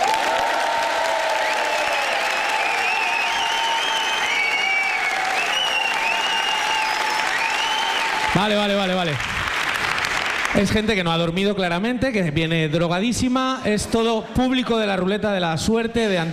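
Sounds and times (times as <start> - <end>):
huge comedy hall audience applauding: 0.0 - 11.1
speech: 8.4 - 9.3, 10.5 - 16.3.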